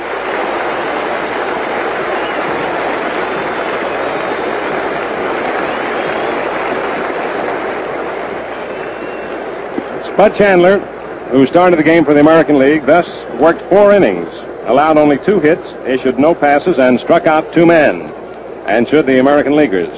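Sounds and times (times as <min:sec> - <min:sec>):
ballpark crowd applause: 0:00.0 - 0:10.3
speech: 0:10.2 - 0:18.1, 0:18.7 - 0:19.9.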